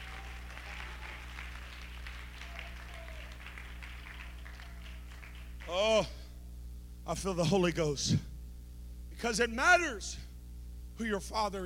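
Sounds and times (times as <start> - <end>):
audience clapping hands: 0.0 - 5.8
speech: 5.7 - 6.2, 7.1 - 8.3, 9.2 - 10.3, 11.0 - 11.6.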